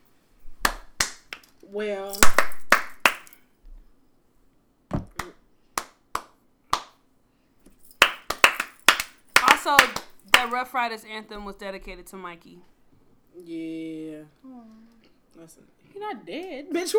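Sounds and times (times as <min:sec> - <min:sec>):
golf clap, soft slow clapping: 0:00.6 - 0:01.5, 0:02.2 - 0:03.4, 0:05.2 - 0:07.0, 0:08.0 - 0:10.6
speech: 0:01.7 - 0:02.4, 0:09.7 - 0:12.8, 0:13.4 - 0:16.9.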